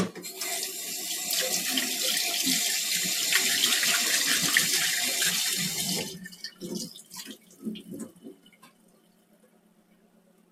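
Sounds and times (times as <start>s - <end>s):
tap water running into a container for soaking meat: 0.2s - 8.9s.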